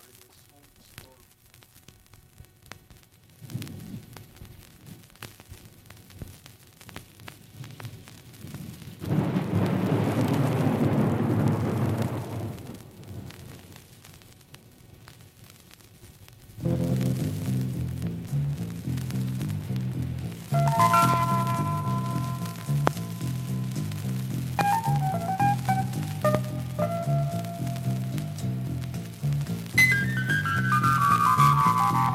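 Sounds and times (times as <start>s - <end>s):
roll of thunder in rock song intro: 9.0s - 13.2s, 19.2s - 32.1s
falling rain in rock song intro: 9.0s - 13.7s, 16.6s - 32.1s
rock song keyboard music: 16.6s - 32.1s.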